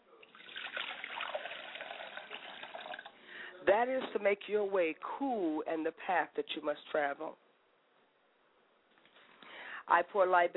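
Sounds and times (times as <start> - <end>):
water poured onto the ground: 0.3 - 3.2
speech: 3.7 - 7.4, 9.9 - 10.5.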